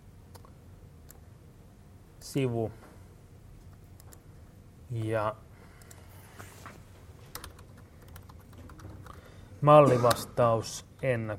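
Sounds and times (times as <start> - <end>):
speech: 2.2 - 2.8, 4.9 - 5.5, 9.6 - 11.3
typing on a computer keyboard: 7.3 - 9.2.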